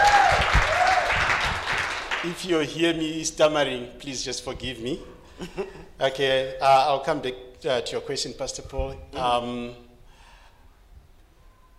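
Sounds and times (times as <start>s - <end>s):
audience applause: 0.0s - 2.5s
speech: 2.2s - 9.8s.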